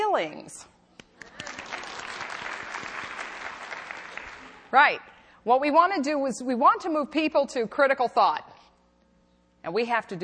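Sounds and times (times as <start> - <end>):
speech: 0.2 - 0.8, 4.7 - 8.5, 9.6 - 10.2
audience applause: 1.2 - 4.7.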